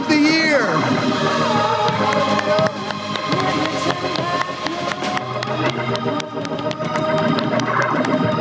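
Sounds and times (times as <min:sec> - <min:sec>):
audience clapping and cheering: 0:01.0 - 0:08.3.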